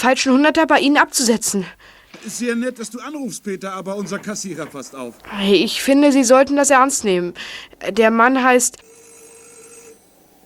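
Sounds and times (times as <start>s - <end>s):
speech: 0.0s - 9.0s
faint hum: 0.0s - 10.4s
electronic doorbell ringing: 8.8s - 10.1s.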